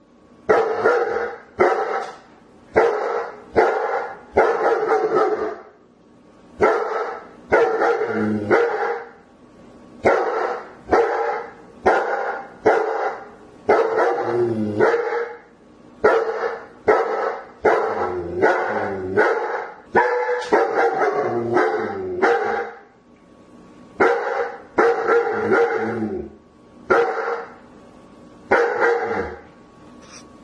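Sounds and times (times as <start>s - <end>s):
German Shepherd barking: 0.5s - 2.2s, 2.8s - 5.7s, 6.6s - 9.2s, 10.0s - 15.4s, 16.0s - 22.8s, 24.0s - 26.0s, 26.9s - 27.6s, 28.5s - 29.4s.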